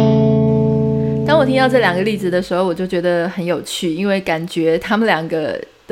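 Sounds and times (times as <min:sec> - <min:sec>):
short music interlude: 0:00.1 - 0:02.9
speech: 0:01.5 - 0:05.9.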